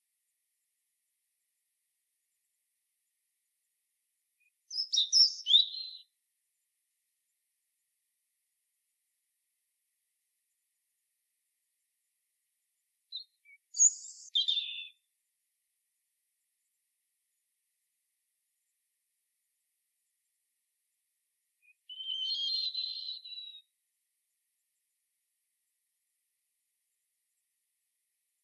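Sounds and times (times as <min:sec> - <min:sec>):
European robin singing: 0:04.4 - 0:06.1, 0:13.1 - 0:15.0, 0:21.6 - 0:23.7.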